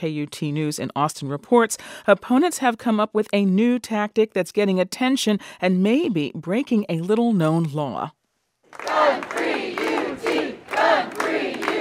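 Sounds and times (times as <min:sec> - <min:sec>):
speech: 0:00.0 - 0:09.4
students and faculty chanting against a campus carry law: 0:08.8 - 0:11.7.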